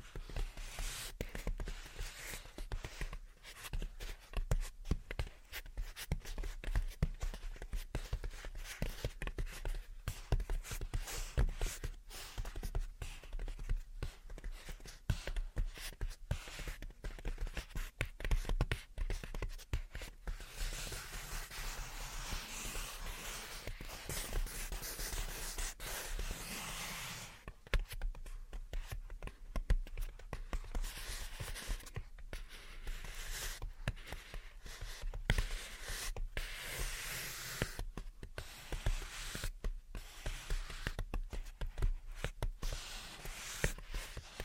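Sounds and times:
gentle tapping and scratching: 0.0s - 44.4s
soft continuous rustle: 0.0s - 44.4s.

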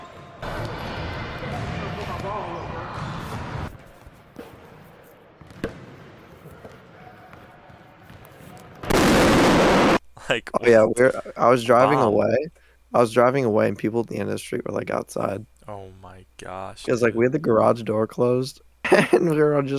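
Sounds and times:
slightly flat ball bouncing: 5.4s - 5.9s
loud burst of noise: 8.9s - 10.0s
speech: 10.3s - 19.7s.

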